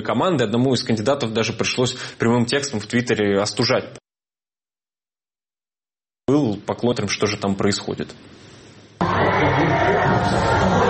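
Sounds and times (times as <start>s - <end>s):
speech: 0.0s - 4.0s, 6.8s - 10.8s
National Rally supporters cheering for leader Marine Le Pen: 9.0s - 10.8s.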